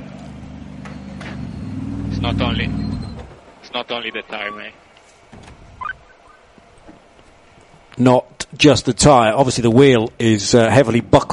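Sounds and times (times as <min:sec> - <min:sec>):
Aston Martin race car engine pulling into the pits: 0:00.0 - 0:03.5
speech: 0:02.2 - 0:02.8, 0:03.7 - 0:04.8, 0:08.0 - 0:11.3.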